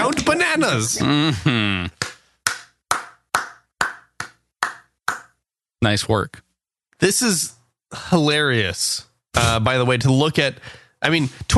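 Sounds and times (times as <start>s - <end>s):
hand claps: 0.0s - 0.4s, 1.8s - 5.4s
speech: 0.6s - 2.0s, 5.8s - 11.5s.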